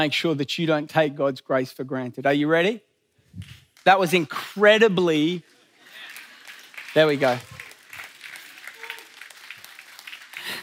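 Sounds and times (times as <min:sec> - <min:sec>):
speech: 0:00.0 - 0:05.5, 0:06.9 - 0:07.6
audience clapping: 0:05.8 - 0:10.6.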